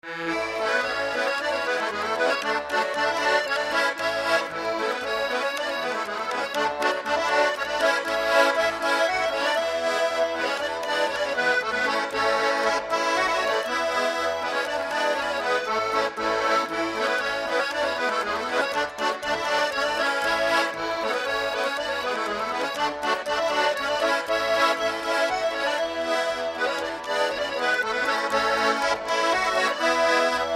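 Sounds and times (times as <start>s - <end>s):
polka music: 0.0s - 30.5s.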